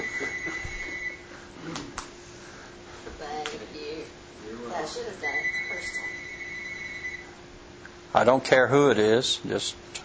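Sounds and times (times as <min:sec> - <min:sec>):
phone ringing: 0:00.0 - 0:01.3, 0:05.2 - 0:07.3
speech: 0:04.9 - 0:06.0, 0:08.2 - 0:09.9.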